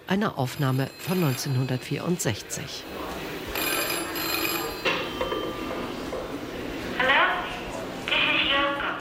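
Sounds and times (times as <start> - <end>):
busy murmur of people talking: 0.0 - 8.9
speech: 0.1 - 3.0
telephone ringing with an electric bell tone: 0.5 - 5.8.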